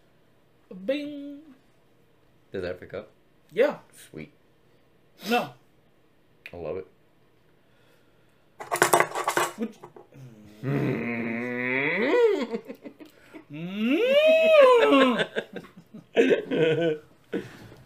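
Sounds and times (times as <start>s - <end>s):
speech: 0.7s - 1.3s, 2.5s - 4.4s, 5.2s - 5.6s, 6.5s - 6.9s, 9.6s - 17.6s
person imitating cow moos: 10.2s - 12.5s, 13.5s - 15.3s
laughter: 13.9s - 17.0s.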